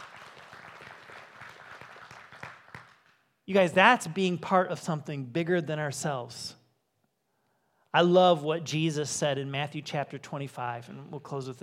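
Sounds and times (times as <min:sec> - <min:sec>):
audience applause: 0:00.0 - 0:03.2
speech: 0:03.5 - 0:06.6, 0:07.9 - 0:11.6.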